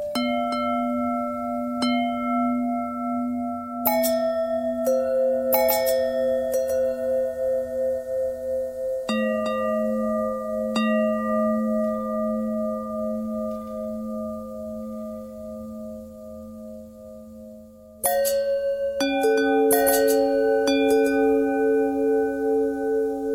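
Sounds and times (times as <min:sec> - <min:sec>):
long bell tones bending: 0:00.2 - 0:23.3.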